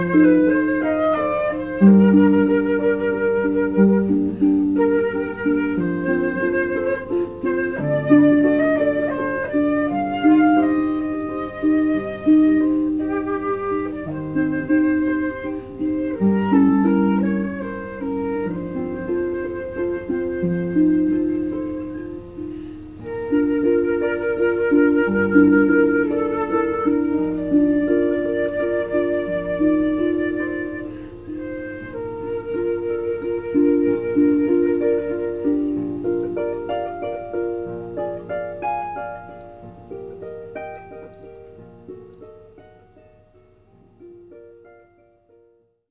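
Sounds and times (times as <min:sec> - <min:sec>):
flute: 0:00.0 - 0:42.4
harp: 0:00.0 - 0:45.8.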